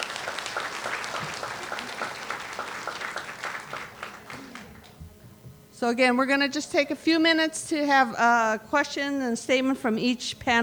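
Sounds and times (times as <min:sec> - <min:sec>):
audience applause for guests and panelists: 0:00.0 - 0:05.0
speech: 0:05.8 - 0:10.6.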